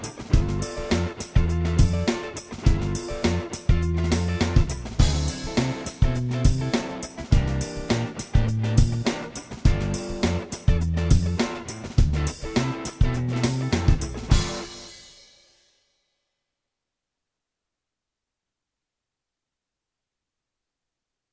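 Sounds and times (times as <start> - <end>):
funk music in G: 0.0 - 15.0.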